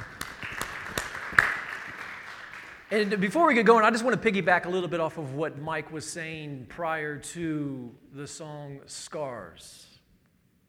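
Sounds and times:
audience applause: 0.0s - 3.1s
speech: 2.9s - 9.9s.

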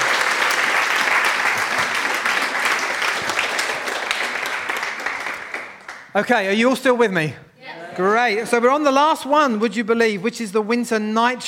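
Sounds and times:
audience applause: 0.0s - 6.2s
speech: 6.2s - 7.4s, 8.0s - 11.4s.

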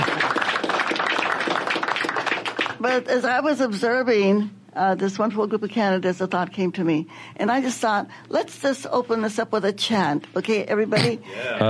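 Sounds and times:
crowd applauding: 0.0s - 3.0s
speech: 2.8s - 11.6s.

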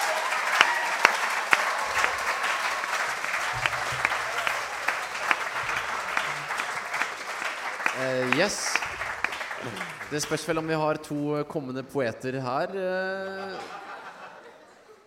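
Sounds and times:
audience applause: 0.0s - 11.1s
laughter: 1.5s - 10.6s, 12.8s - 15.0s
speech: 8.4s - 8.8s, 9.6s - 13.8s.

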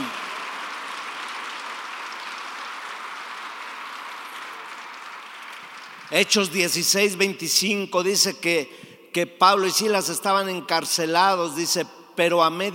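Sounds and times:
audience applause: 0.0s - 6.4s
speech: 6.1s - 12.7s.

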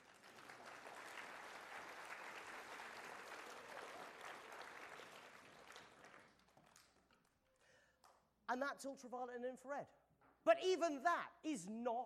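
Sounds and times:
audience applause: 0.0s - 7.2s
speech: 8.5s - 12.0s.

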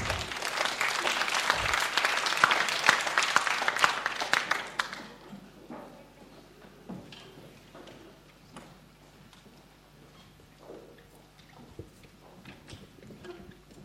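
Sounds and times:
audience applause: 0.0s - 5.2s.

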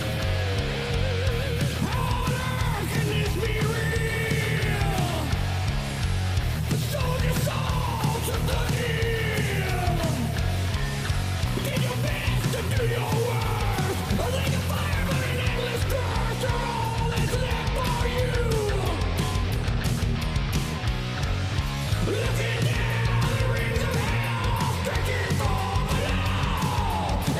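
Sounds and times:
metal vocals layered like a mini choir: 0.0s - 27.3s.

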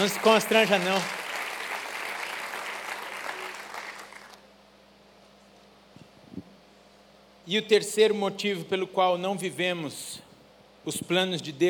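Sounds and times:
speech: 0.0s - 1.2s, 7.5s - 10.2s, 10.8s - 11.6s
crowd clapping: 0.0s - 4.5s.

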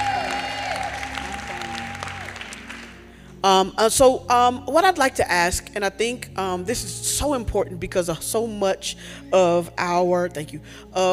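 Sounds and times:
crowd clapping: 0.0s - 3.1s
speech: 3.4s - 11.1s.

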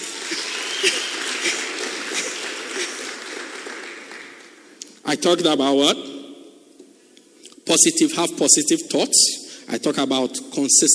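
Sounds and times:
laughter: 0.0s - 3.8s
audience clapping: 0.0s - 4.8s
speech: 5.1s - 6.1s, 7.7s - 10.9s.

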